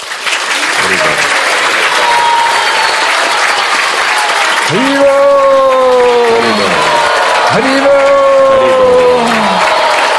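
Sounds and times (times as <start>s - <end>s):
loud applause from devotees: 0.0s - 10.1s
speech: 4.7s - 5.3s, 7.6s - 8.2s.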